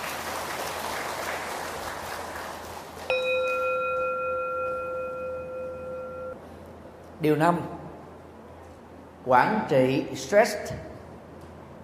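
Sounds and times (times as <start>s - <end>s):
crowd applauding: 0.0s - 3.2s
bright bell-like tone: 3.1s - 6.4s
speech: 7.2s - 7.8s, 9.2s - 10.9s.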